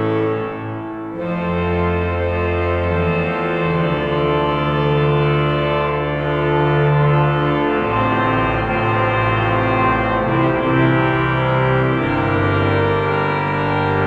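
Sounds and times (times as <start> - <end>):
cathedral organ in Sion Valais: 0.0 - 14.0.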